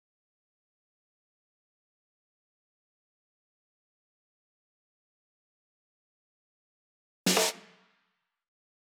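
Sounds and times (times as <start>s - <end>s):
drum loop fill: 7.3s - 7.7s.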